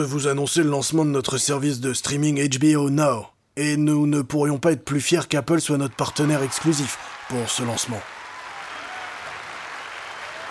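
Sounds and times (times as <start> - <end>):
speech: 0.0 - 8.2
audience applause: 5.9 - 10.4.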